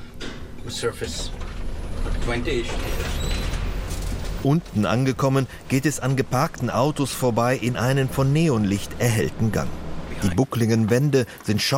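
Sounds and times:
elevator descending underground: 0.0s - 10.4s
speech: 0.6s - 1.5s, 2.1s - 3.2s, 4.4s - 11.7s
faint creaks and clicks: 1.1s - 5.2s.

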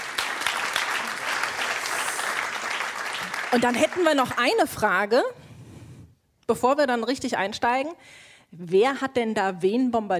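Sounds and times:
audience applause: 0.0s - 4.6s
speech: 3.5s - 5.4s, 6.5s - 10.1s.

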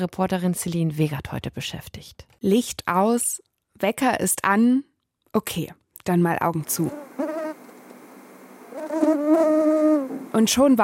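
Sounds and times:
speech: 0.0s - 7.3s, 10.4s - 10.8s
insect buzzing: 6.8s - 10.4s.

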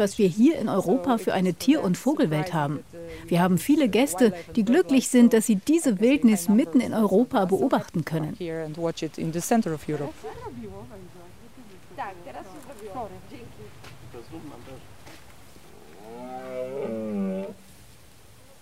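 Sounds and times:
speech: 0.0s - 11.1s
red deer stags roaring during rut: 15.6s - 17.7s.

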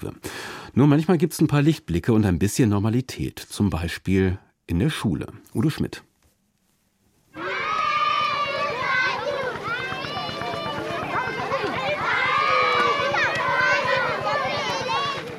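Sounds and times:
speech: 0.0s - 6.1s
children laughing, singing and shouting in a school playground in a refugee camp: 7.4s - 15.3s.

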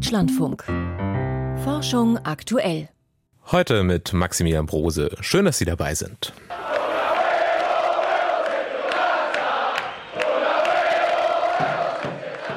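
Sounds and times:
speech: 0.1s - 0.9s, 1.6s - 6.7s
crowd cheering and chanting on election night in Argentina: 6.5s - 12.5s.

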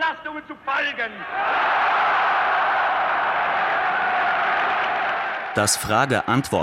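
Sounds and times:
speech: 0.1s - 2.3s, 5.5s - 6.6s
large crowd applauding and cheering at rally: 1.3s - 6.6s.

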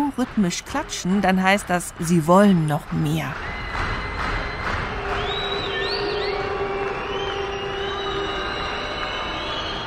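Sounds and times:
speech: 0.2s - 4.0s
concert audience booing: 3.4s - 9.8s.

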